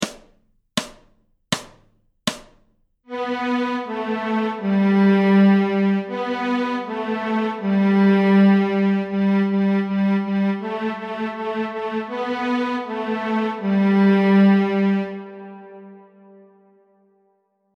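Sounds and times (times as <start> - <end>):
violin: 3.1 - 16.6.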